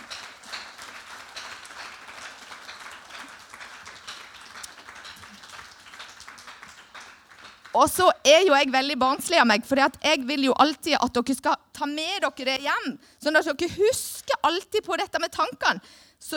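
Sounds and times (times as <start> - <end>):
audience applause: 0.0 - 7.8
speech: 7.8 - 16.3.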